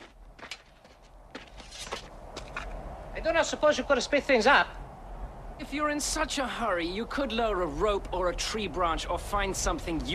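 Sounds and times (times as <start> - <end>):
swordsman's footsteps stepping away: 0.0 - 2.8
speech: 3.2 - 4.8, 5.6 - 10.1.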